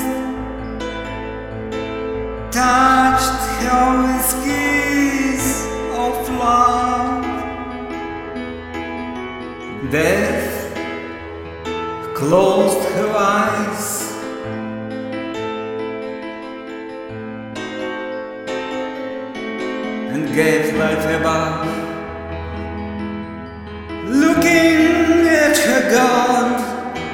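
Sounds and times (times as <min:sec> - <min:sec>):
piano piece: 0:00.0 - 0:27.1.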